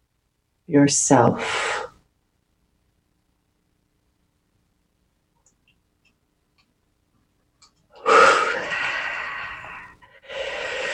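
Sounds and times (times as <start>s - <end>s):
speech: 0.7s - 1.9s
deep breath: 8.0s - 10.9s.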